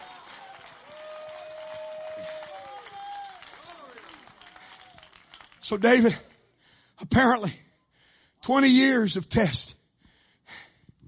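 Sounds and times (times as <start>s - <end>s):
audience shouting praise: 0.0s - 5.2s
audience clapping: 0.0s - 6.3s
speech: 5.7s - 6.3s, 7.2s - 7.6s, 8.5s - 9.8s.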